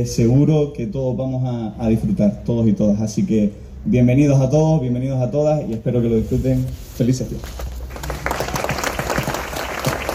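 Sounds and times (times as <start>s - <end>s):
speech: 0.0s - 7.7s
audience applause: 7.9s - 10.1s.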